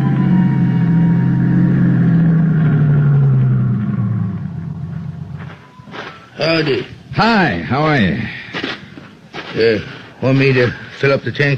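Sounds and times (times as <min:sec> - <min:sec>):
car driving up a mountain road: 0:00.0 - 0:08.2
speech: 0:06.4 - 0:08.7, 0:09.5 - 0:11.5.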